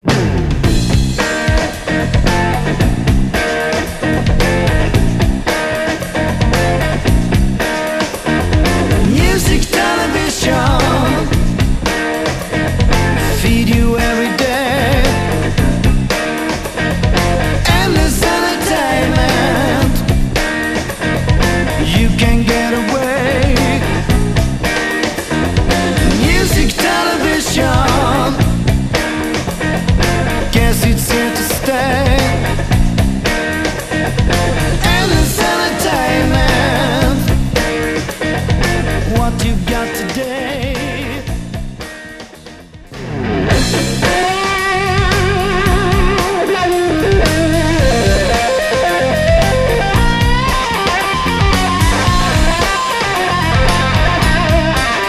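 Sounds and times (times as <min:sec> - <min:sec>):
electric blues power music: 0:00.0 - 0:55.0.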